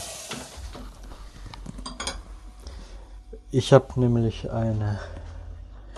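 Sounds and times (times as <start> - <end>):
water poured over hot food in an oven sizzling: 0.0 - 1.0
dishes clinking in a kitchen: 1.8 - 2.3
speech: 3.5 - 5.2.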